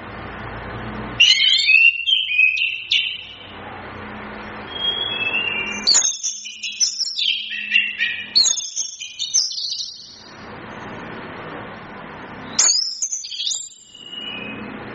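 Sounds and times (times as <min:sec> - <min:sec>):
Chestnut-capped thrush singing: 0:01.2 - 0:03.5, 0:04.6 - 0:10.3, 0:12.5 - 0:14.8.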